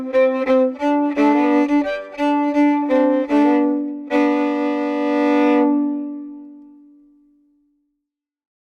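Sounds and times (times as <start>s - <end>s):
fiddle playing slangpolska from Sadermanland with harmony: 0.0s - 6.9s.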